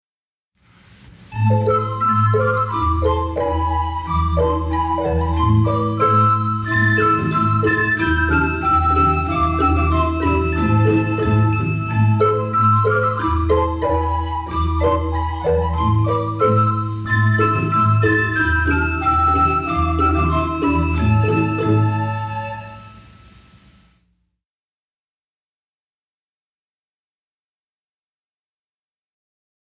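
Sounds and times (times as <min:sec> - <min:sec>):
recorders with instruments: 0:00.7 - 0:24.0.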